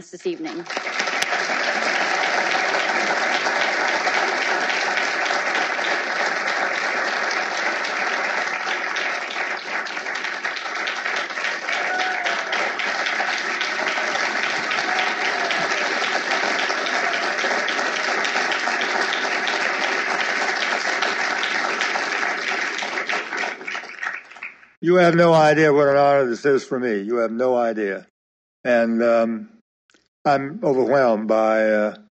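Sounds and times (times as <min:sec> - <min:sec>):
speech: 0:00.0 - 0:01.5, 0:24.9 - 0:29.5, 0:30.3 - 0:32.0
audience clapping to welcome a speaker at an evening law lecture: 0:00.0 - 0:25.5.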